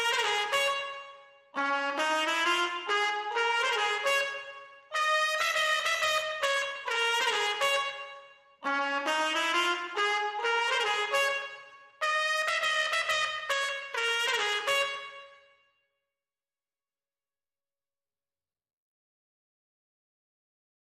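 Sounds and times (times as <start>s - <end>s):
clean trumpets: 0.0s - 15.6s.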